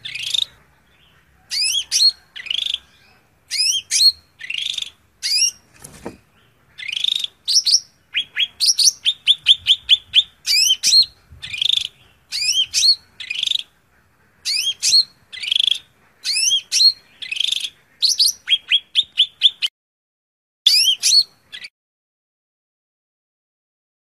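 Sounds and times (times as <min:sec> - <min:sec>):
greater green leafbird song: 0:03.5 - 0:05.6, 0:06.9 - 0:13.6, 0:14.5 - 0:19.7, 0:20.7 - 0:21.7.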